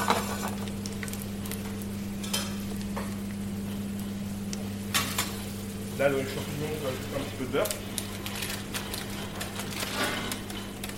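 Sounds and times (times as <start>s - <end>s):
grenaille potatoes sizzling in fat in a pan: 0.0s - 10.8s
speech: 6.0s - 7.9s.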